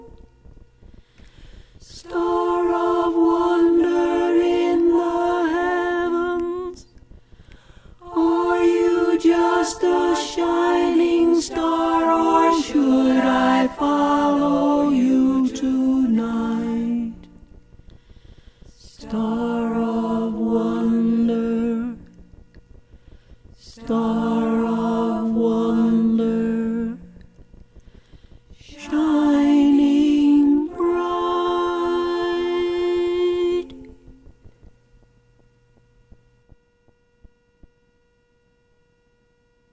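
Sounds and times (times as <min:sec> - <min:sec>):
choir singing a carol in harmony with mezzo voice: 0:01.8 - 0:06.8, 0:08.0 - 0:17.4, 0:18.8 - 0:22.1, 0:23.6 - 0:27.2, 0:28.6 - 0:34.0.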